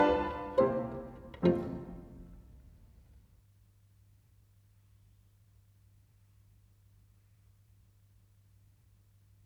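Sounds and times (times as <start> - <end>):
march music: 0.0 - 2.6.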